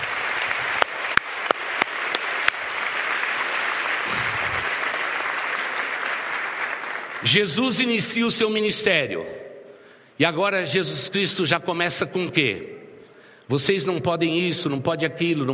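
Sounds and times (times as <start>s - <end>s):
audience applauding: 0.0s - 7.8s
speech: 7.2s - 9.5s, 10.2s - 12.8s, 13.5s - 15.5s.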